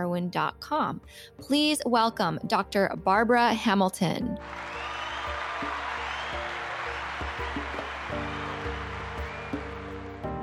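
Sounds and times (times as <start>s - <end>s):
speech: 0.0s - 4.9s
roaring applause: 4.4s - 10.3s.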